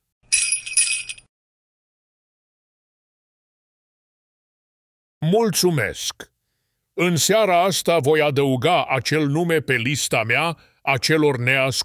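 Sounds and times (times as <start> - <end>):
sleigh bells jingling: 0.3 - 1.3
speech: 5.2 - 6.3, 7.0 - 11.8.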